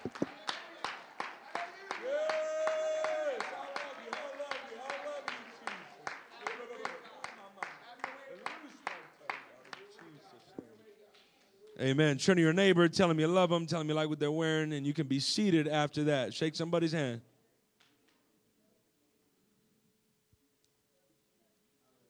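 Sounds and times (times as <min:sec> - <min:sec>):
audience applauding: 0:00.0 - 0:11.2
speech: 0:11.8 - 0:17.3.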